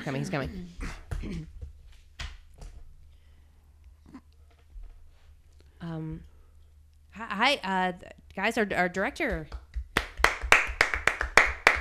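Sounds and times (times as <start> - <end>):
speech: 0.0 - 1.6, 5.8 - 6.3, 7.2 - 9.6
audience clapping: 9.2 - 11.7.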